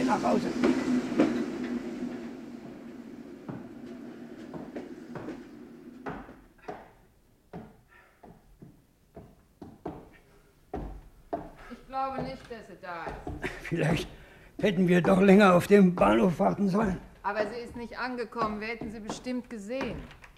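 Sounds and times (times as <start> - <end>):
train rattling along rails: 0.0 - 6.0
speech: 0.1 - 1.2, 12.6 - 20.2.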